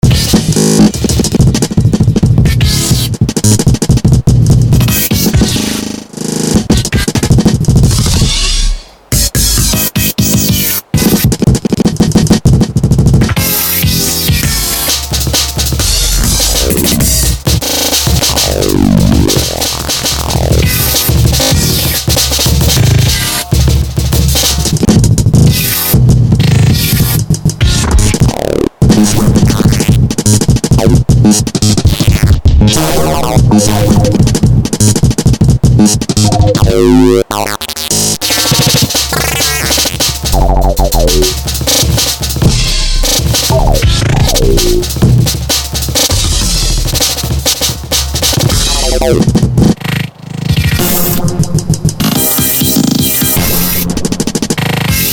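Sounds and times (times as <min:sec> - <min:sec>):
drumming session: 0:00.0 - 0:55.1.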